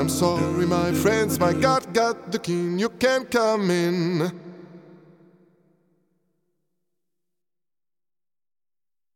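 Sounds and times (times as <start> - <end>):
Lexicon PCM91 reverb test: 0.0 - 6.3.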